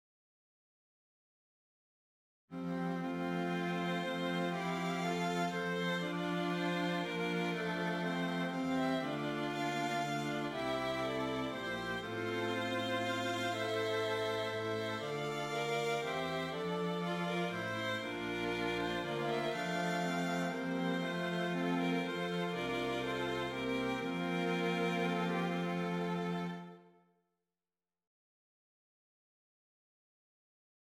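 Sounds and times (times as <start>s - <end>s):
strings playing a hymn: 2.6s - 26.9s.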